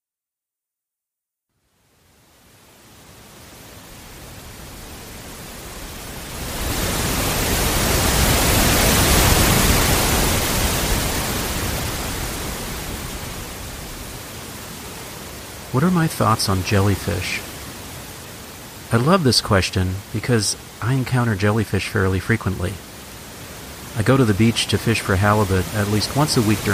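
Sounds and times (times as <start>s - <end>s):
ocean waves: 2.5s - 26.7s
speech: 15.8s - 17.5s, 18.9s - 22.9s, 24.0s - 26.7s.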